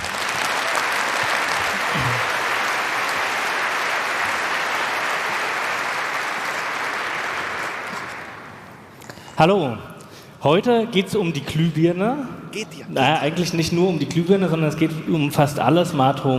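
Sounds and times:
audience applause: 0.0s - 8.8s
speech: 9.4s - 16.3s.

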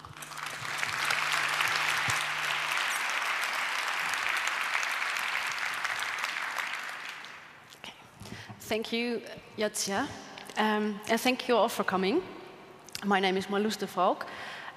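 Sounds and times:
audience applause: 0.0s - 7.7s
speech: 8.7s - 12.4s, 13.0s - 14.7s.

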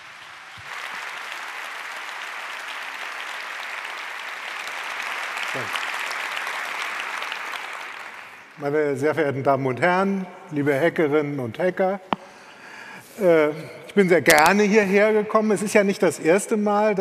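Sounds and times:
audience applause: 0.0s - 8.6s
speech: 5.5s - 5.9s, 8.6s - 12.1s, 13.2s - 16.9s.

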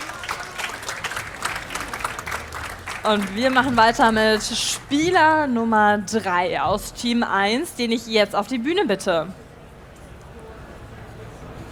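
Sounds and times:
audience applause: 0.0s - 4.6s
speech: 3.0s - 9.4s.

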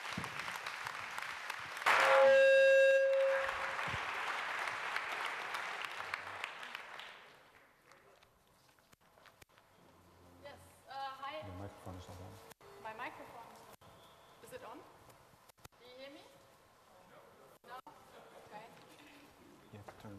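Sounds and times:
audience applause: 0.0s - 2.2s, 3.0s - 7.9s.

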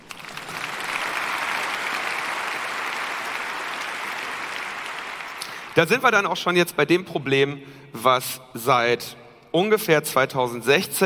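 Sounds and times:
crowd applause: 0.0s - 5.8s
speech: 5.8s - 11.0s.

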